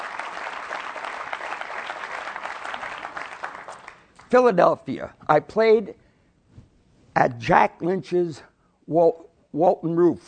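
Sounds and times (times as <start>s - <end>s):
audience applause: 0.0s - 4.1s
speech: 4.3s - 6.0s, 7.2s - 10.2s.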